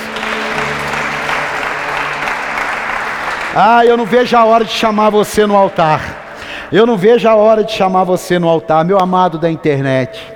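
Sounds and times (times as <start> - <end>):
audience applause: 0.0 - 8.1
speech: 3.6 - 10.3.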